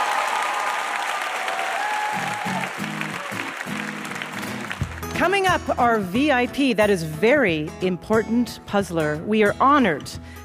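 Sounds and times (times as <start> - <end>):
audience applause: 0.0 - 5.2
speech: 5.2 - 10.4.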